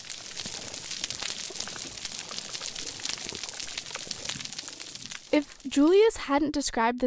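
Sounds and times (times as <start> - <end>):
coral reef crackles of crustaceans: 0.0 - 6.0
speech: 5.4 - 7.0.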